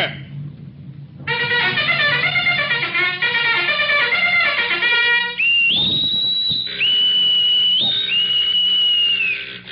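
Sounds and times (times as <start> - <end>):
naval general quarters alarm: 1.2 - 9.7
shrill whistle blasts: 5.2 - 9.6.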